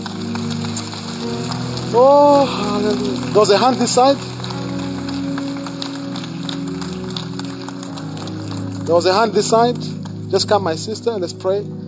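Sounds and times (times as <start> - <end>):
church audience clapping: 0.0 - 11.2
speech: 1.9 - 4.3, 8.9 - 11.8.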